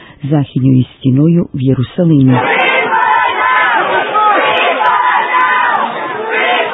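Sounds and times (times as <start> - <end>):
speech: 0.2 - 2.5
crowd of demonstrators shouting slogans together: 2.4 - 6.7.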